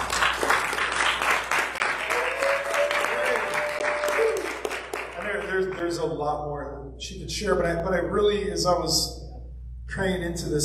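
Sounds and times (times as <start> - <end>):
audience applause for a speaker: 0.0 - 5.9
speech: 5.9 - 9.2, 9.9 - 10.6.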